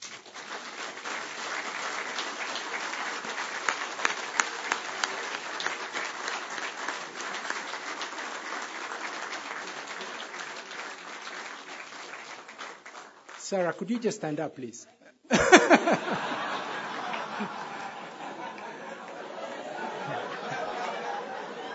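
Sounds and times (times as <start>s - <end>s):
audience clapping: 0.0s - 14.7s, 15.3s - 21.7s
speech: 13.5s - 15.0s
laughter: 15.3s - 21.7s.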